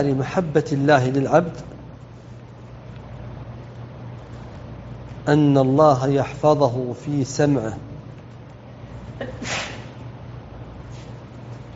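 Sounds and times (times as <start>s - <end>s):
speech: 0.0s - 1.7s, 5.3s - 7.9s, 9.2s - 9.7s
sneeze during a religious lecture: 9.2s - 10.0s.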